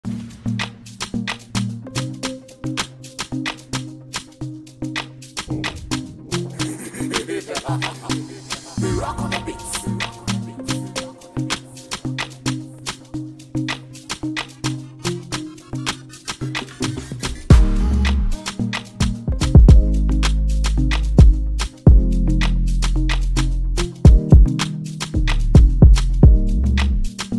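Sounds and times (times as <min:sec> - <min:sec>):
instrumental music: 0:00.1 - 0:27.3
laughter: 0:06.2 - 0:11.1.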